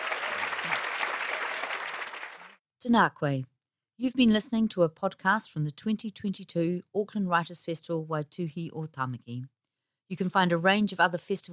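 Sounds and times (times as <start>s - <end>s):
audience applause: 0.0s - 2.6s
speech: 2.8s - 11.5s.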